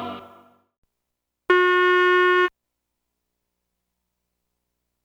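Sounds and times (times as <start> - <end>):
musical probe tones: 1.5 - 2.5.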